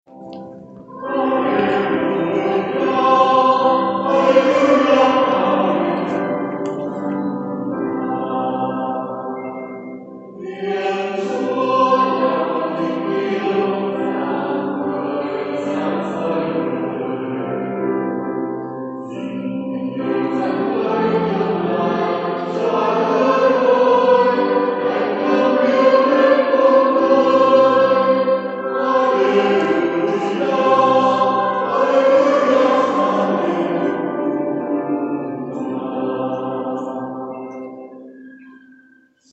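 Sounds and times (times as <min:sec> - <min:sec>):
choral hymn singing: 0:00.1 - 0:39.0.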